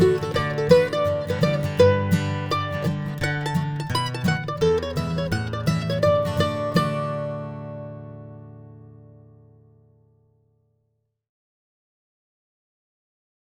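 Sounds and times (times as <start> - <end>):
ragtime piece: 0.0 - 7.0.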